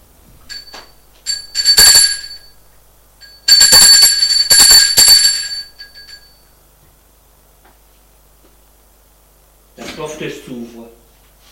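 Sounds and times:
apartment doorbell ringing: 0:00.5 - 0:02.6, 0:03.2 - 0:06.5.

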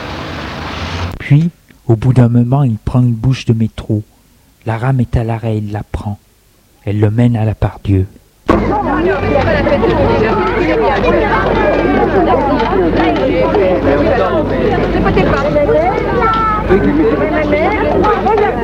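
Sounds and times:
speech: 0:01.3 - 0:06.2, 0:06.8 - 0:18.6
dense crowd hubbub in a busy station: 0:08.4 - 0:18.6.

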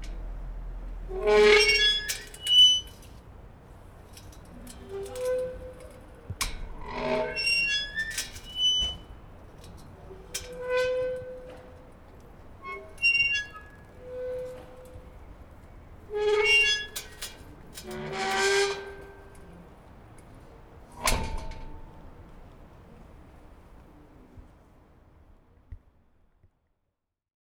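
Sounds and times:
gate squeaking: 0:00.0 - 0:19.7, 0:20.4 - 0:22.2.

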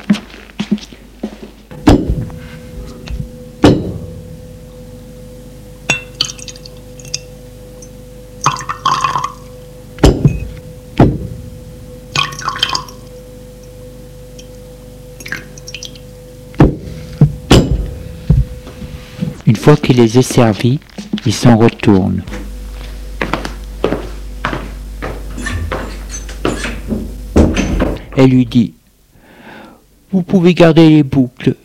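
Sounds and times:
low steady hum: 0:00.0 - 0:31.6
glass champagne bottles and glasses clinking on a rolling serving trolley: 0:05.9 - 0:09.4, 0:15.2 - 0:16.0
speech: 0:19.7 - 0:22.4, 0:28.2 - 0:28.8, 0:30.1 - 0:31.6.

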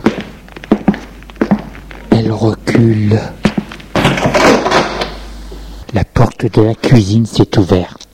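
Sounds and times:
footsteps in a hallway: 0:00.0 - 0:05.7
speech: 0:02.2 - 0:03.4, 0:05.9 - 0:08.0.

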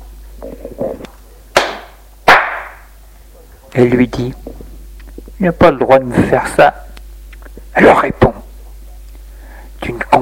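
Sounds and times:
speech: 0:00.4 - 0:01.2, 0:03.8 - 0:04.5, 0:05.4 - 0:06.9, 0:07.8 - 0:08.3
slap across the face: 0:01.6 - 0:02.8.

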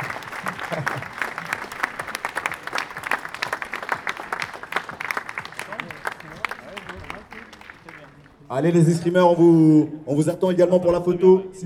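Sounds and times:
laughter: 0:00.0 - 0:02.1
audience applause: 0:00.0 - 0:08.5
speech: 0:08.5 - 0:11.6.

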